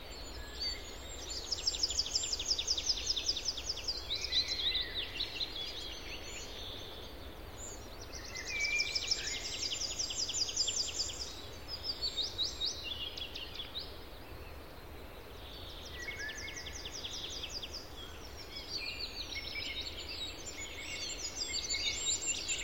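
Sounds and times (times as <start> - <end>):
varied serene gentle birdsong: 0.0 - 22.6.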